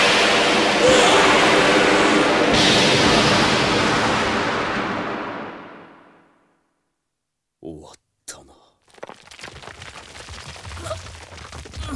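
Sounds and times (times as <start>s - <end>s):
magical lightning strike explosion: 0.0s - 6.4s.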